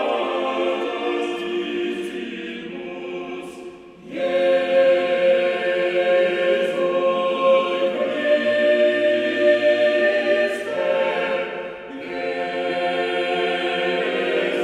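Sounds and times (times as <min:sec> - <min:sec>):
sacred mass music: 0:00.0 - 0:14.6.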